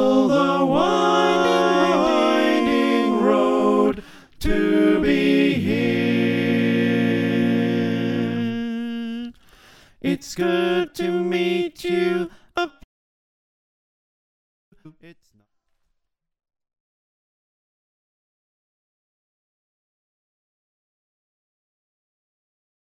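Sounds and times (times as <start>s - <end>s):
soprano alto tenor bass choir singing: 0.0s - 9.2s, 10.0s - 12.3s.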